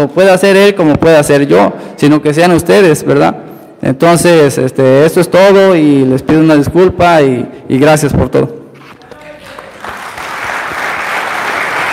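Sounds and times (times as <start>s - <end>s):
speech: 0.0s - 8.6s
audience applause: 9.2s - 11.9s.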